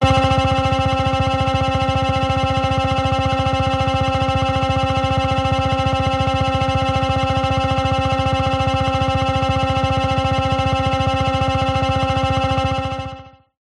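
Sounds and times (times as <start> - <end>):
synth laser drone: 0.0 - 13.4.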